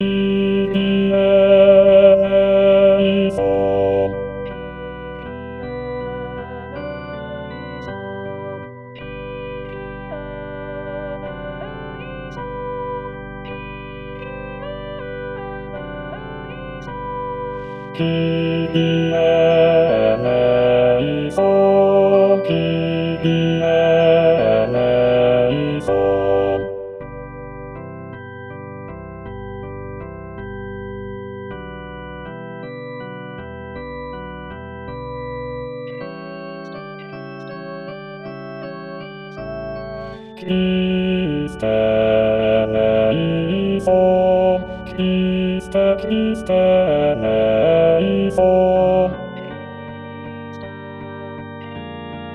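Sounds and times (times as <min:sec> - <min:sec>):
bass voice singing a kyrie: 0:00.0 - 0:07.7, 0:14.3 - 0:27.5, 0:39.8 - 0:49.6.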